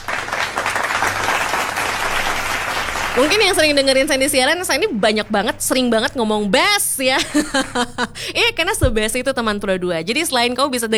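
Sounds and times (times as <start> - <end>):
applause: 0.0 - 3.8
laughter: 0.0 - 10.9
speech: 3.2 - 10.9.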